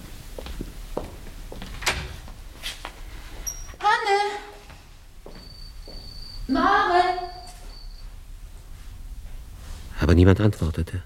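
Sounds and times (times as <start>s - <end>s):
house crickets chirping in a wash-house and by a stove: 4.8s - 8.7s
speech: 10.1s - 11.0s.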